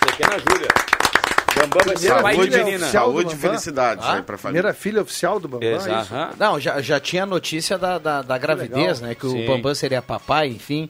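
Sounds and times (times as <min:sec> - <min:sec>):
round of applause: 0:00.0 - 0:02.7
speech: 0:00.2 - 0:10.8.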